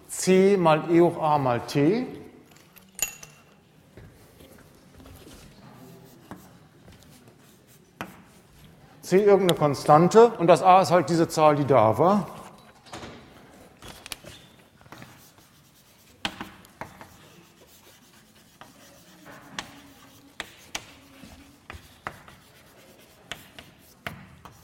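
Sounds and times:
speech: 0.2s - 2.2s, 9.1s - 12.4s
mathematical formula written out by hand: 4.3s - 8.7s, 13.8s - 24.6s.

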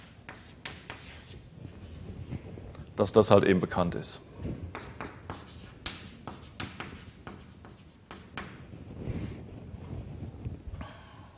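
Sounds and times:
writing a derivation by hand: 0.3s - 1.4s, 4.7s - 8.6s
speech: 3.0s - 4.3s.

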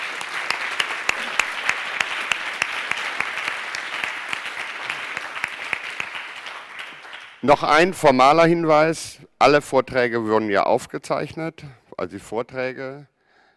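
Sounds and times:
audience applause: 0.0s - 7.4s
speech: 7.4s - 13.1s.

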